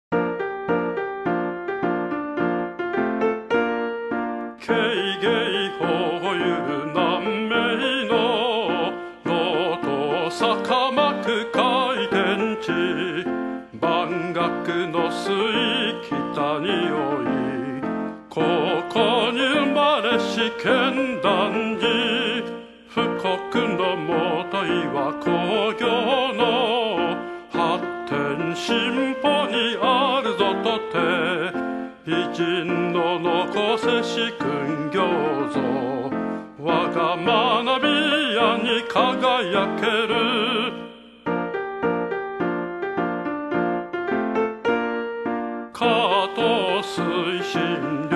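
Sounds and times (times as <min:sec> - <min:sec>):
old piano: 0:00.1 - 0:48.1.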